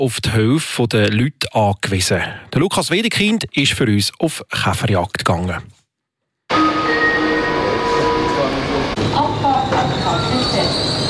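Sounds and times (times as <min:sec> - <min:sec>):
speech: 0:00.0 - 0:05.8
passenger train brakes squealing: 0:06.5 - 0:11.0.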